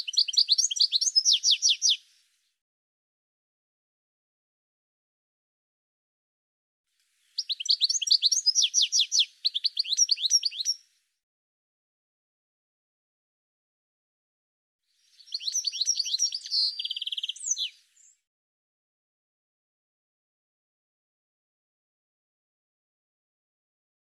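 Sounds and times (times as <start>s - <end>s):
bird chirping: 0.0s - 2.0s, 7.3s - 10.9s, 15.0s - 18.3s.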